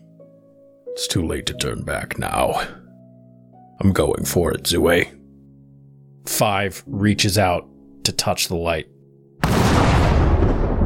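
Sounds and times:
speech: 0.9 - 2.8, 3.8 - 5.2, 6.2 - 8.9
thunderous reality-ripping magical effect: 9.4 - 10.8.

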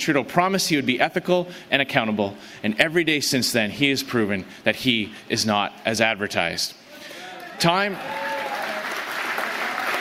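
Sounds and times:
speech: 0.0 - 6.8, 7.6 - 8.2
partisan crowd applause: 7.2 - 9.9.

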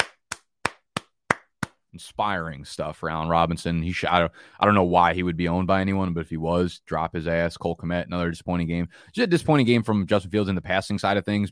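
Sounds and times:
hands clapping: 0.0 - 1.8
speech: 2.0 - 11.5.

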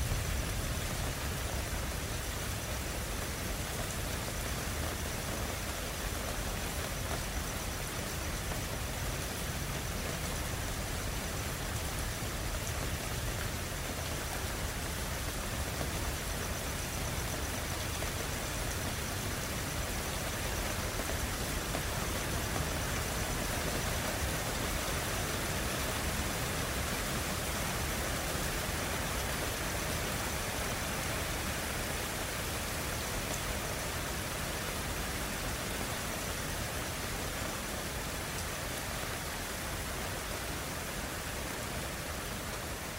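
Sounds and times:
storm rain over Brisbane: 0.0 - 42.9.

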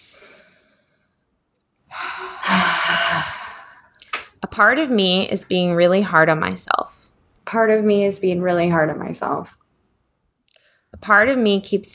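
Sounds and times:
deep breath during a guided self-reflection: 0.0 - 1.1, 1.9 - 4.2
speech: 4.6 - 9.6, 11.0 - 11.9.

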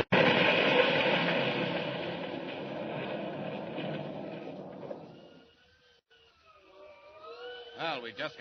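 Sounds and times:
trolley car crashing: 0.0 - 5.6
speech: 8.0 - 8.3.

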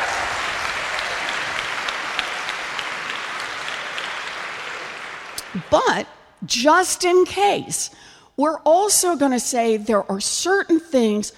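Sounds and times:
crowd applauding: 0.0 - 6.0
speech: 5.5 - 11.3.

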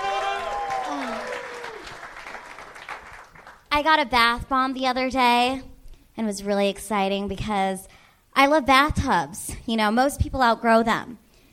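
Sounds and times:
audience whooping: 0.0 - 3.2
audience applauding a comedian taking the stage: 0.0 - 3.7
speech: 3.8 - 11.2.

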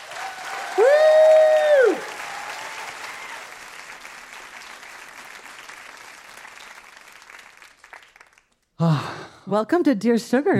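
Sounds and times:
sustained vocal whoop: 0.0 - 3.4
audience applause welcoming a guest to the stage: 0.0 - 8.6
speech: 9.5 - 10.5.

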